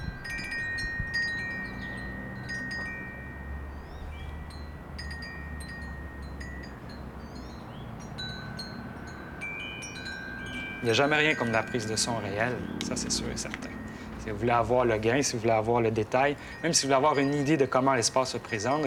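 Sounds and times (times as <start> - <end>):
small wind chime by a house: 0.0 - 18.8
speech: 10.8 - 18.8.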